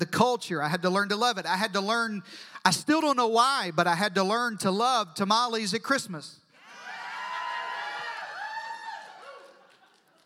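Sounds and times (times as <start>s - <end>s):
speech: 0.0s - 6.4s
audience cheering and screaming: 6.6s - 9.9s.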